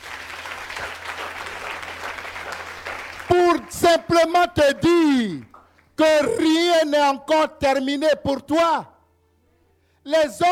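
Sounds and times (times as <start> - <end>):
church congregation applauding: 0.0 - 3.7
speech: 3.5 - 8.9, 10.0 - 10.5.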